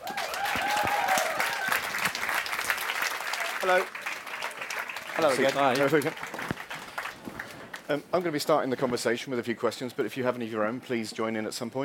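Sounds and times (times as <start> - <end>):
audience applause welcoming two guests onto a stage: 0.0 - 7.9
speech: 3.6 - 4.0, 5.2 - 6.3, 7.9 - 11.8.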